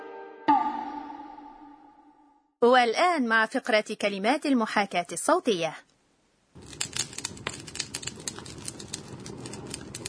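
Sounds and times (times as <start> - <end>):
speech: 2.6 - 5.9
firewood crackling as it burns: 6.6 - 10.0.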